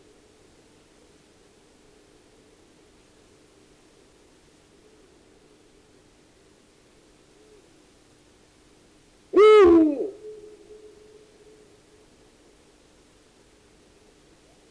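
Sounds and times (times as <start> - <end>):
Eurasian eagle-owl calls: 9.4 - 11.1.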